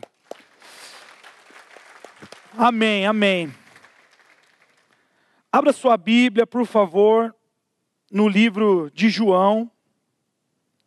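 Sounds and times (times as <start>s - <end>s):
audience applauding: 0.0s - 5.1s
speech: 2.6s - 3.6s, 5.6s - 7.4s, 8.1s - 9.7s.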